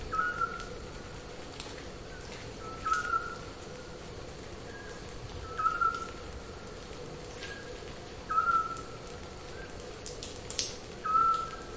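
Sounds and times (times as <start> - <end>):
Eurasian scops owl uttering short piping whistles: 0.1 - 0.6, 2.7 - 3.4, 5.5 - 6.1, 8.3 - 8.8, 11.1 - 11.6.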